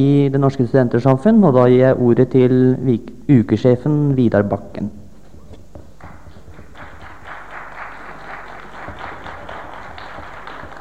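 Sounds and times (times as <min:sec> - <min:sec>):
speech: 0:00.0 - 0:05.0
audience applause: 0:06.0 - 0:10.7.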